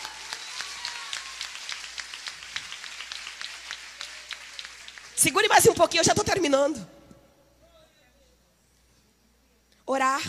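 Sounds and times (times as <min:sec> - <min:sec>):
audience applauding: 0:00.0 - 0:05.7
speech: 0:05.2 - 0:07.0.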